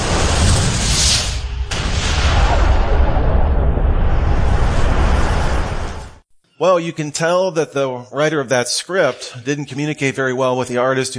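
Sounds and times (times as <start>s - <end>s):
explosion sound effect depicting the Big Bang: 0.0s - 6.2s
speech: 6.6s - 11.1s.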